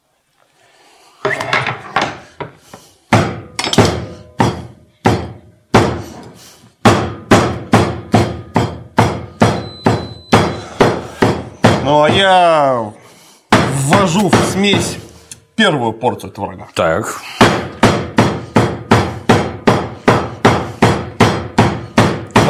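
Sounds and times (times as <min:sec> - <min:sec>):
small hatchet chopping: 0:03.1 - 0:06.0, 0:06.8 - 0:12.3, 0:17.4 - 0:22.4
speech: 0:11.9 - 0:13.0, 0:14.0 - 0:15.0, 0:15.6 - 0:17.8.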